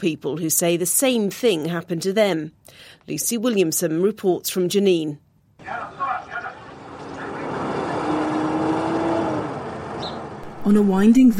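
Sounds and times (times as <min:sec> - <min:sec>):
speech: 0:00.0 - 0:06.0, 0:10.6 - 0:11.3
indistinct voices: 0:05.6 - 0:08.6
military jeep driving past: 0:05.6 - 0:10.6.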